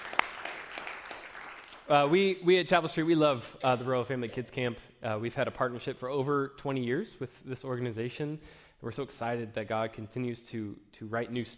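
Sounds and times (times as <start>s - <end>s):
audience applause: 0.0s - 1.9s
speech: 1.9s - 11.5s.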